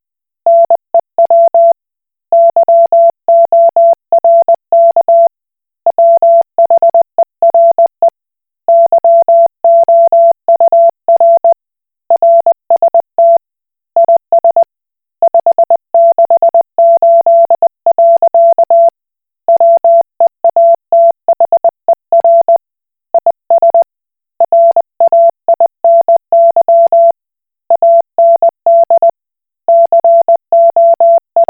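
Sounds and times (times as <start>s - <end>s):
Koch Morse code beeps: 0.5s - 1.8s, 2.4s - 5.3s, 6.0s - 7.9s, 8.7s - 11.6s, 12.2s - 13.4s, 14.0s - 14.7s, 15.3s - 18.9s, 19.6s - 22.6s, 23.2s - 27.2s, 27.8s - 29.1s, 29.7s - 31.4s.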